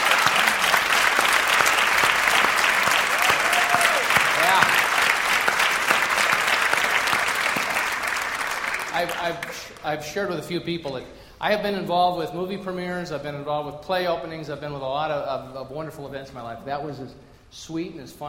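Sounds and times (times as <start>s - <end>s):
audience applause for volunteers: 0.0s - 9.8s
speech: 9.0s - 18.2s.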